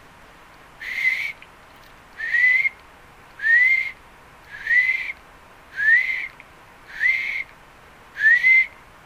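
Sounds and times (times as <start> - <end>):
faint hiss: 0.0 - 9.0
bird whistling a rising note: 0.8 - 1.4, 2.2 - 2.8, 3.4 - 5.2, 5.8 - 6.3, 6.9 - 7.5, 8.2 - 8.8.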